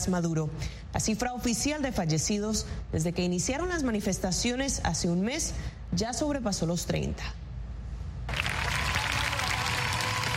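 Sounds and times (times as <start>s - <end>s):
speech: 0.0s - 7.4s
student crowd applauding: 8.3s - 10.3s.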